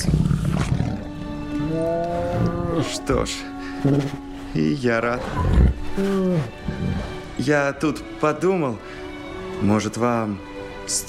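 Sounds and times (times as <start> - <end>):
Rajah the tiger roaring in the animated film Aladdin: 0.0 - 3.0, 5.2 - 7.3
sustained tonal music: 0.0 - 11.0
speech: 2.8 - 9.0, 9.6 - 11.0.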